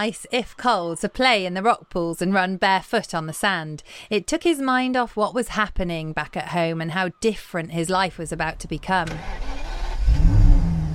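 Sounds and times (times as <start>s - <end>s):
speech: 0.0s - 9.5s
car engine revving as the car pulls off: 9.1s - 10.9s.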